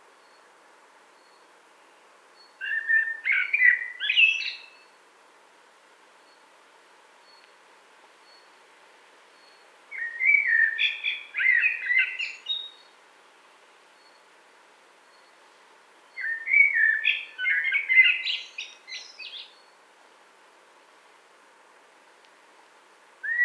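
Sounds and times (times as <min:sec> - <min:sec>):
Eurasian blackbird song phrases: 0:02.4 - 0:05.0, 0:09.3 - 0:13.0, 0:14.0 - 0:14.3, 0:16.1 - 0:19.8, 0:23.2 - 0:23.4.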